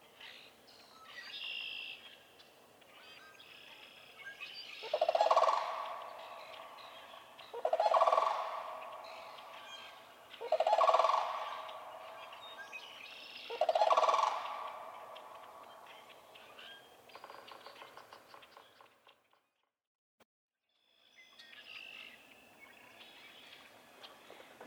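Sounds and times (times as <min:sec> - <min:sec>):
Sandhill Crane calling: 0:04.8 - 0:16.3.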